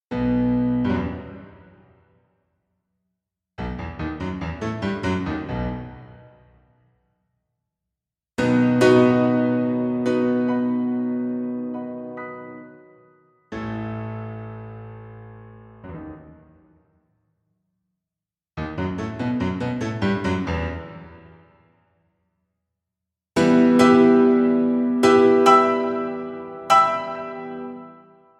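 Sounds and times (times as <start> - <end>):
very lively fiery piano allegro: 0.1 - 2.2, 3.6 - 6.8, 8.4 - 17.0, 18.6 - 21.7, 23.4 - 28.3.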